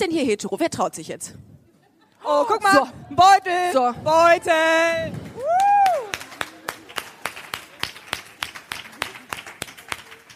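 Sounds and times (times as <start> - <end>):
speech: 0.0 - 1.6, 2.2 - 5.3
audience applause: 5.1 - 10.3.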